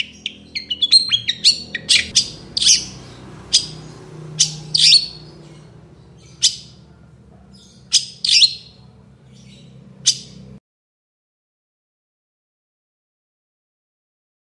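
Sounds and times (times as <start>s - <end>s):
long-tailed shrike singing: 0.0s - 10.6s
quiet hum: 0.0s - 10.6s.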